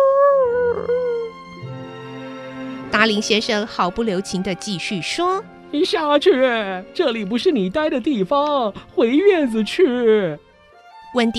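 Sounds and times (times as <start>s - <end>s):
dog whimpering: 0.0s - 1.4s
speech: 3.0s - 10.4s, 11.1s - 11.3s.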